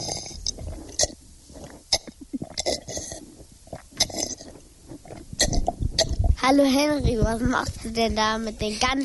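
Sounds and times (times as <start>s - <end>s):
person gulping down water: 0.0s - 6.4s
speech: 6.4s - 9.0s.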